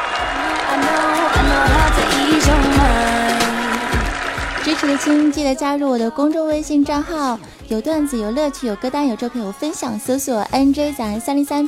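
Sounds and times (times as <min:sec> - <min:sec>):
applause: 0:00.0 - 0:05.4
speech: 0:04.7 - 0:11.6.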